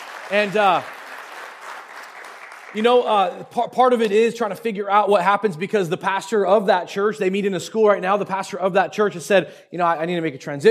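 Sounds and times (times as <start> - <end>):
church audience clapping for a new church campus announcement: 0.0 - 3.5
speech: 0.3 - 1.0, 2.7 - 10.6.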